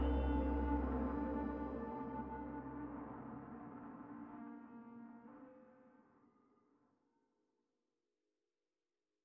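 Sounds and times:
synth pads: 0.0s - 5.1s.

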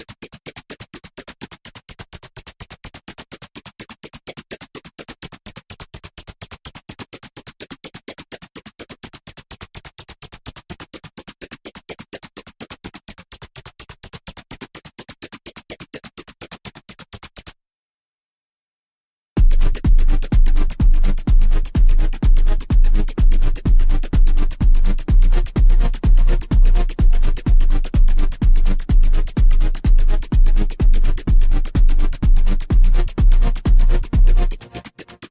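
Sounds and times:
drum and bass music: 19.4s - 35.3s.

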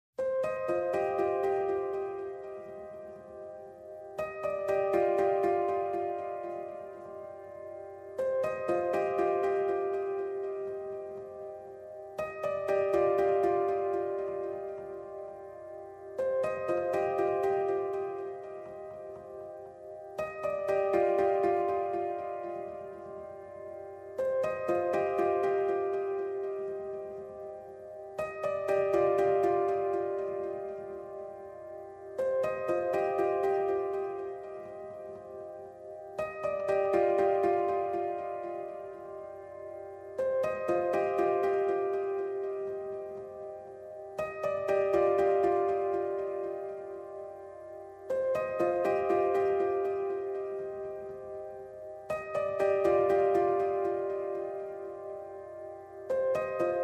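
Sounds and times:
high piano: 0.2s - 56.8s.

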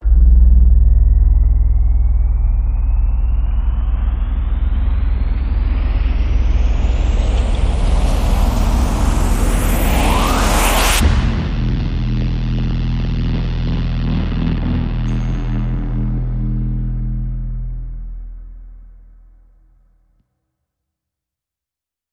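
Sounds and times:
long rising sound effect: 0.0s - 19.3s.

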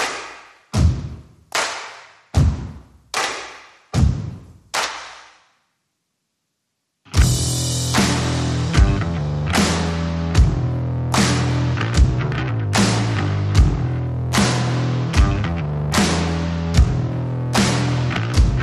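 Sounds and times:
drums: 0.0s - 1.4s, 2.3s - 3.0s, 3.9s - 4.6s, 7.1s - 18.6s
bass: 7.1s - 18.6s.

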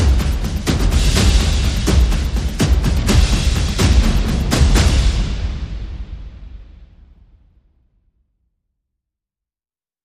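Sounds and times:
percussion: 0.0s - 7.6s.

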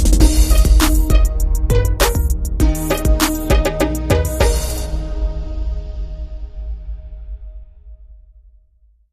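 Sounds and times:
hip hop music: 0.2s - 5.8s.

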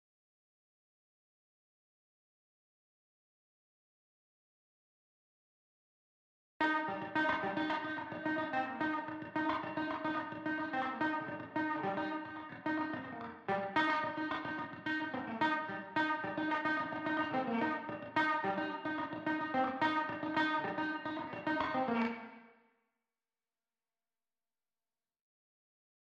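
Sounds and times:
guitar: 6.6s - 22.5s.

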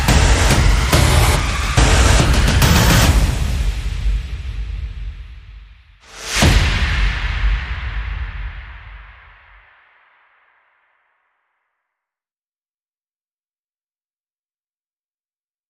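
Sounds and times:
sound effects: 0.0s - 4.2s
percussion: 0.0s - 11.6s.

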